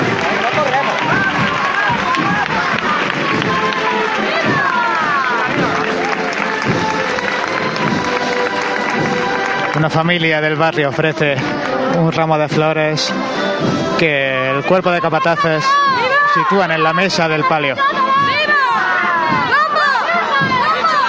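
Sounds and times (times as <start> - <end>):
neighborhood crowd applauding: 0.0 - 13.2, 14.0 - 21.0
speech: 9.8 - 18.2.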